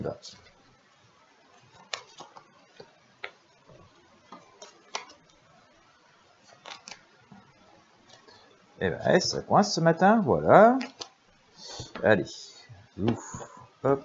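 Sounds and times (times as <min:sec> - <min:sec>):
speech: 0:00.0 - 0:00.5, 0:08.8 - 0:11.0, 0:12.0 - 0:14.0
faint hiss: 0:00.0 - 0:14.0
Tarot de Marseille cards being shuffled: 0:01.6 - 0:03.4, 0:04.3 - 0:05.2, 0:06.5 - 0:07.1.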